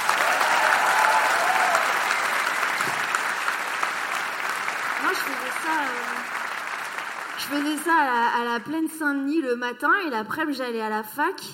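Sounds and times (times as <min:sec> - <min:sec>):
audience applause at a live public recording: 0:00.0 - 0:08.3
speech: 0:07.5 - 0:11.5.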